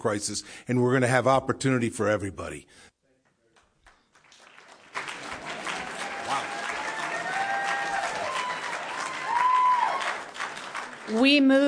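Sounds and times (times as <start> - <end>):
speech: 0.0 - 2.9, 11.1 - 11.6
audience clapping: 3.5 - 11.6
cheering voices: 5.0 - 11.3
shrill whoop: 6.0 - 10.2.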